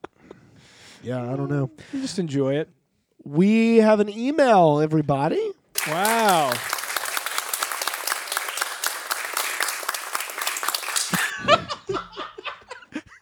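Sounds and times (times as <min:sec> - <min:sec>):
speech: 0:01.0 - 0:06.8
applause: 0:05.8 - 0:11.4
laughter: 0:09.5 - 0:13.1.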